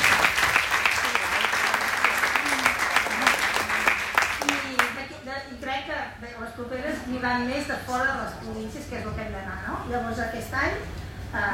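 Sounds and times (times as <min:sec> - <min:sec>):
audience applause: 0:00.0 - 0:05.0
speech: 0:07.2 - 0:11.5.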